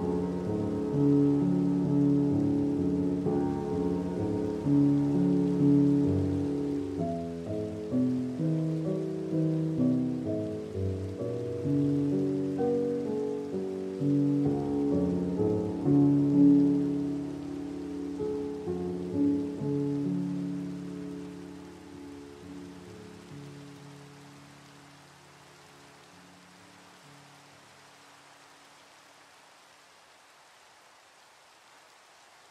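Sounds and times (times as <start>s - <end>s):
slowed down music: 0.0s - 25.0s
rain: 0.0s - 32.4s.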